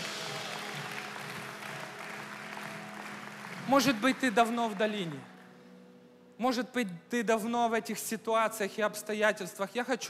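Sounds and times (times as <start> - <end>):
loud applause: 0.0 - 5.6
speech: 3.7 - 5.3, 6.4 - 10.0.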